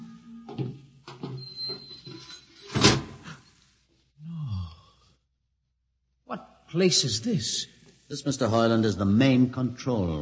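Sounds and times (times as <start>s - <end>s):
door sliding with low mechanical rumble and scraping: 1.2s - 3.4s
speech: 6.3s - 10.1s.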